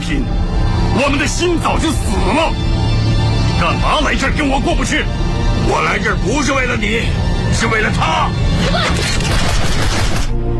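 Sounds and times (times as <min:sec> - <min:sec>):
speech: 0:00.1 - 0:00.4, 0:01.0 - 0:02.7, 0:03.6 - 0:10.0
burst of gunfire: 0:09.0 - 0:10.4.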